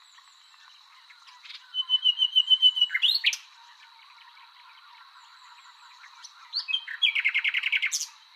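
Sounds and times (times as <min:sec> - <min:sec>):
common nightingale Luscinia megarhynchos singing varied phrases: 0:00.0 - 0:08.3.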